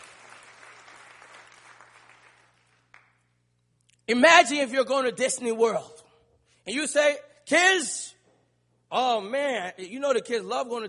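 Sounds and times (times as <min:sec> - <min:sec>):
audience hand clapping: 0:00.0 - 0:03.4
speech: 0:04.1 - 0:06.0, 0:06.6 - 0:08.1, 0:08.9 - 0:10.8.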